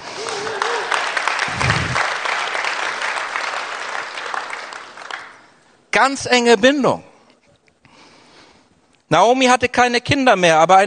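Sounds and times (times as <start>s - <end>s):
audience clapping: 0.0s - 5.6s
speech: 6.0s - 7.1s, 9.1s - 10.8s.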